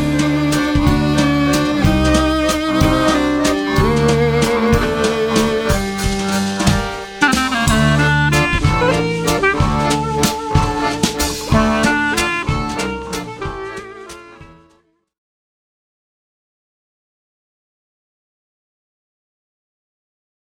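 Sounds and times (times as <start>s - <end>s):
Hungarian waltz music: 0.0s - 14.7s.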